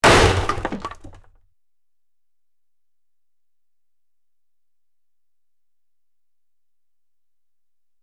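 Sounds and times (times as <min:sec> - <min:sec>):
wood breaking: 0:00.0 - 0:01.3.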